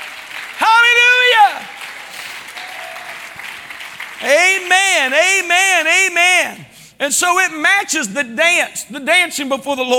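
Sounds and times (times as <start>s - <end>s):
audience clapping hands: 0.0s - 6.0s
speech: 4.2s - 9.9s.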